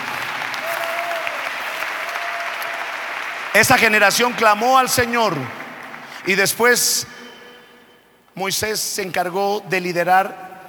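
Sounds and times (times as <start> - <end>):
audience applause: 0.0 - 6.5
speech: 3.6 - 5.6, 6.2 - 7.2, 8.4 - 10.5.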